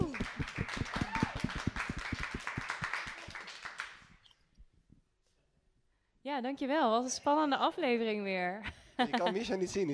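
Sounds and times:
audience applause: 0.0 - 4.1
speech: 6.4 - 9.9.

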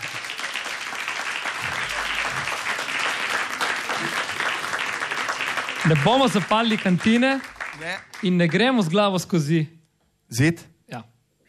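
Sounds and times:
audience applause: 0.0 - 9.1
speech: 5.8 - 11.1.

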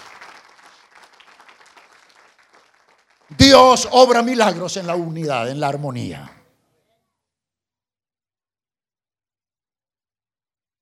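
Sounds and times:
church congregation applauding in praise of the Lord: 0.0 - 6.1
speech: 3.3 - 6.4.

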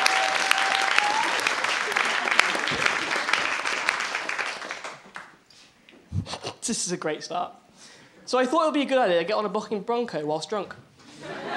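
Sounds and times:
audience applause: 0.0 - 5.4
speech: 6.7 - 7.6, 8.3 - 11.4
laughter: 11.1 - 11.5.

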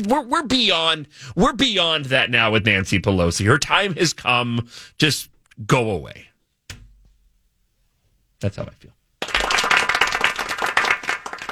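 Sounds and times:
speech: 0.0 - 6.3, 8.4 - 9.4
hands clapping: 9.2 - 11.4.

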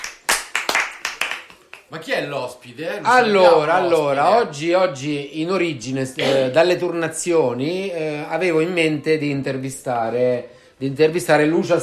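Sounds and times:
sharp hand claps: 0.0 - 1.9
speech: 1.9 - 11.8.

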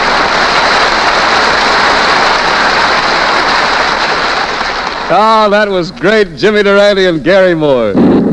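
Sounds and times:
rain sound effect: 0.0 - 5.1
speech: 5.1 - 8.2.

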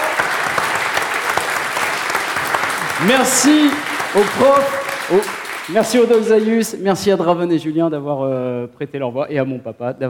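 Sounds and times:
audience applause: 0.0 - 6.8
speech: 3.0 - 10.0.

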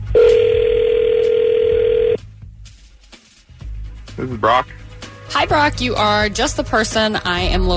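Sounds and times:
loud steady low-pitched telephone tone: 0.2 - 2.2
speech: 4.2 - 7.7.

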